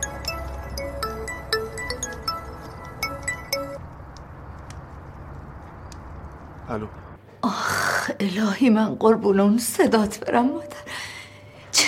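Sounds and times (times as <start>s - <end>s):
mobile phone ringing with a chime-like melody: 0.0s - 3.8s
speech: 6.7s - 10.9s.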